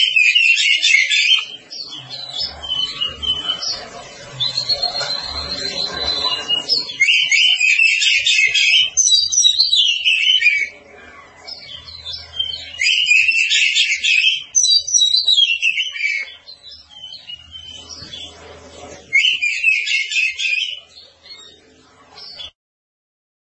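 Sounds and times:
Oriental magpie-robin song: 0:00.0 - 0:22.6.

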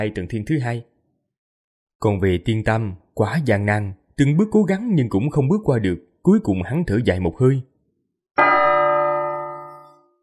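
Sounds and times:
speech: 0:00.0 - 0:00.9, 0:02.0 - 0:07.7
bell ringing: 0:08.4 - 0:10.2.

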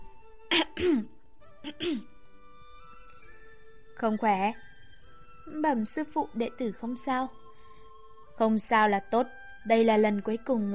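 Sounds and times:
soft dry coughs: 0:00.5 - 0:01.1, 0:01.7 - 0:02.1
speech: 0:00.8 - 0:02.1, 0:04.0 - 0:04.7, 0:05.5 - 0:07.4, 0:08.4 - 0:10.7.

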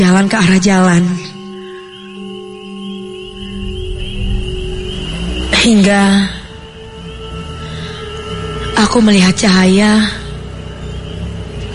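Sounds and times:
speech: 0:00.0 - 0:01.4, 0:05.6 - 0:06.4, 0:08.8 - 0:10.2
motorcycle engine: 0:03.0 - 0:11.7.

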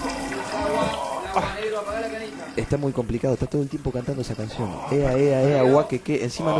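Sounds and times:
water running from a tap: 0:00.0 - 0:06.5
speech: 0:01.8 - 0:06.5.

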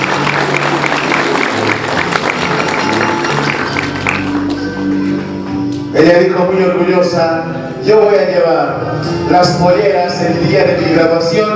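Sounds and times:
audience applause at a school graduation ceremony: 0:00.0 - 0:05.2
speech: 0:06.0 - 0:11.5.

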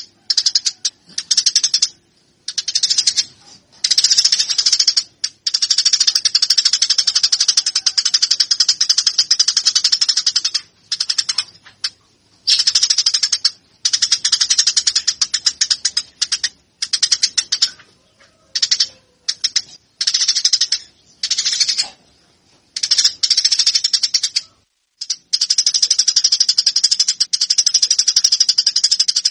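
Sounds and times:
Eurasian tree sparrow chattering: 0:00.0 - 0:22.2, 0:22.8 - 0:29.2.

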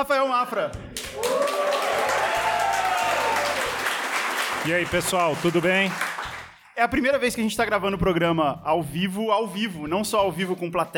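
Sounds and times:
speech: 0:00.0 - 0:01.6, 0:04.6 - 0:06.1, 0:06.8 - 0:10.9
live audience applause: 0:01.0 - 0:06.6
crowd cheering and whooping: 0:01.2 - 0:04.2.

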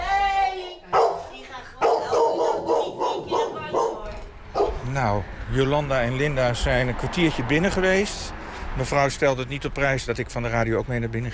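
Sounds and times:
dog barking at a house: 0:00.9 - 0:04.9
speech: 0:05.0 - 0:11.3.

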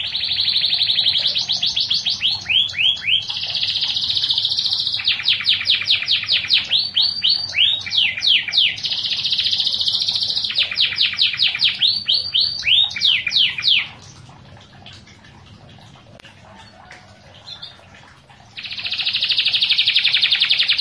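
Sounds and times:
canary singing with buzzy rolling trill: 0:00.0 - 0:14.2, 0:18.6 - 0:20.8.

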